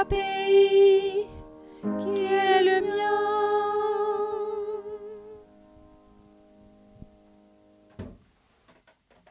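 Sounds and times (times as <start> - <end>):
women singing a verse: 0.0 - 5.5.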